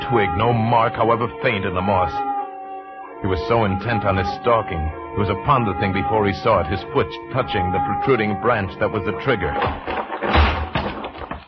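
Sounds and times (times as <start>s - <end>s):
speech: 0.1s - 2.3s, 3.2s - 9.9s
dead tree crashing onto the ground: 9.6s - 11.4s.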